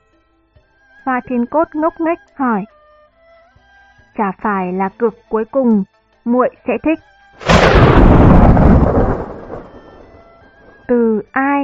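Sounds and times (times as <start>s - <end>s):
speech: 1.0s - 2.7s, 4.2s - 8.0s, 10.9s - 11.6s
thunder crack from lightning strike: 7.4s - 10.9s.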